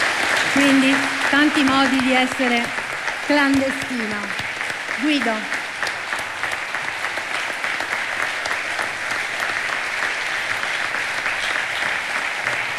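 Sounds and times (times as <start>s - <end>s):
long applause: 0.0s - 12.7s
speech: 0.6s - 4.4s, 5.0s - 5.6s.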